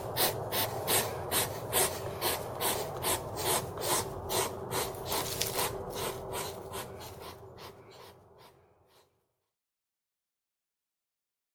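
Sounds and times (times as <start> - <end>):
forest hedgehog sounds: 0.0 - 9.1.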